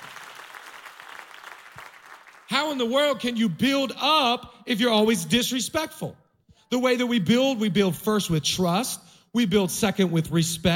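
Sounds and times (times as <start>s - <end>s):
audience clapping: 0.0s - 2.9s
speech: 2.6s - 10.7s.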